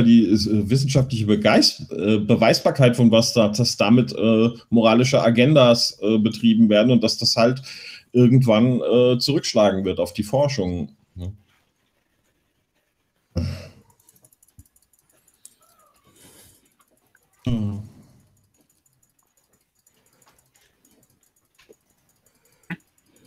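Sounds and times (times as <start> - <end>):
speech: 0.0 - 11.4, 13.4 - 13.7
computer mouse clicking hard: 13.7 - 23.2.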